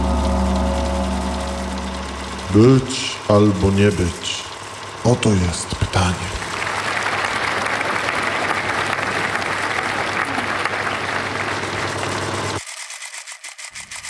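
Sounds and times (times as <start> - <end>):
short buzzing tone: 0.0 - 3.8
speech: 2.5 - 6.4
theatre audience applause: 6.2 - 12.6.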